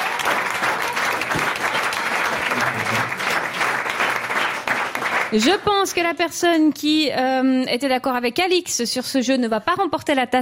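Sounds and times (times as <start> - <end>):
audience applause: 0.0 - 6.2
speech: 5.3 - 10.4.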